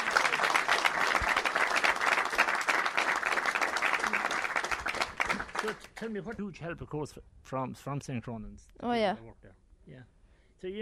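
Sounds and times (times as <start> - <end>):
audience round of applause: 0.0 - 6.1
speech: 5.6 - 10.8.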